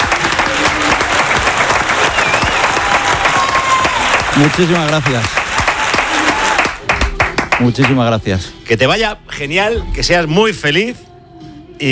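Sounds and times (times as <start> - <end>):
standing applause: 0.0 - 8.1
speech: 4.4 - 5.4, 7.6 - 11.1.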